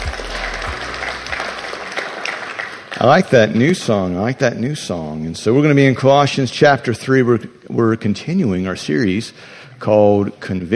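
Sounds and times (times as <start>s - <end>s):
church congregation applauding: 0.0s - 3.9s
speech: 3.0s - 10.7s.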